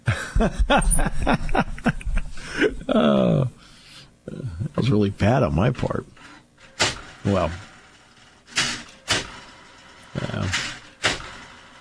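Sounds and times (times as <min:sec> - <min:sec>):
laughter: 0:00.0 - 0:03.4
speech: 0:00.4 - 0:02.0, 0:02.6 - 0:03.6, 0:04.3 - 0:06.2, 0:07.2 - 0:07.7, 0:10.4 - 0:10.7
printer clunking: 0:06.6 - 0:11.8.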